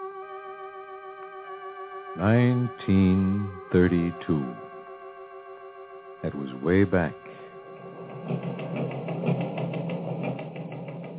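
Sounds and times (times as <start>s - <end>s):
speech: 2.2s - 4.6s, 6.2s - 7.4s
teletype machine clattering: 7.8s - 11.1s.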